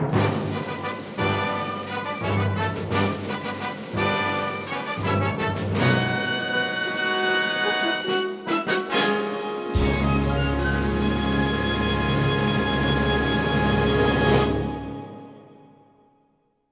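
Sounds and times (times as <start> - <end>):
fanfare: 0.1 - 15.9.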